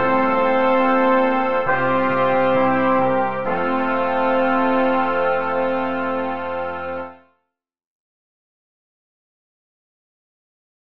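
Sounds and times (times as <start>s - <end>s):
hymn: 0.0s - 7.2s.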